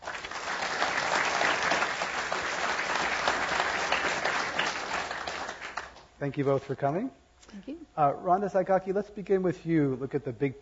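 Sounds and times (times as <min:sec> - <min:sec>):
audience applause welcoming guests at a Climate One event at the Commonwealth Club: 0:00.0 - 0:06.0
speech: 0:06.2 - 0:10.6.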